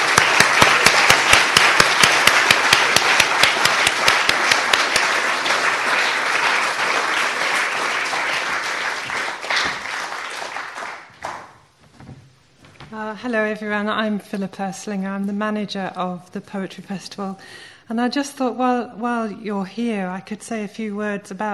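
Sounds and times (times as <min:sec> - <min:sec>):
audience applause: 0:00.0 - 0:11.6
speech: 0:13.2 - 0:21.5.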